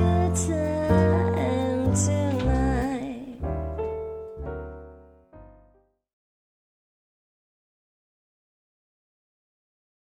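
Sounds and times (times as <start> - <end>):
person singing jazz: 0.0 - 3.6.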